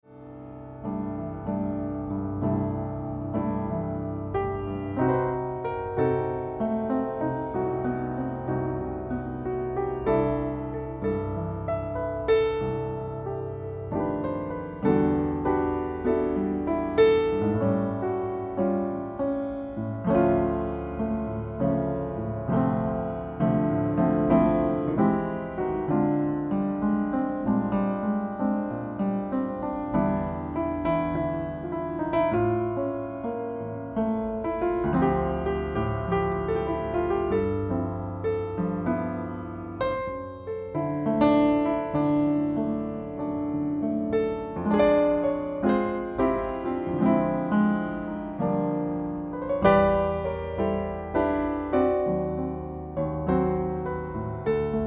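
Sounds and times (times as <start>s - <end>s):
meditation jazz piano: 0.0s - 54.8s.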